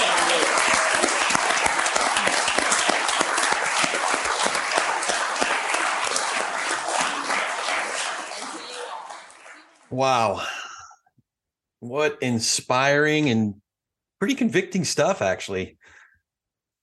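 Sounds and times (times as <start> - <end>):
audience applause: 0.0 - 10.4
speech: 10.0 - 10.6, 11.8 - 13.6, 14.2 - 16.0.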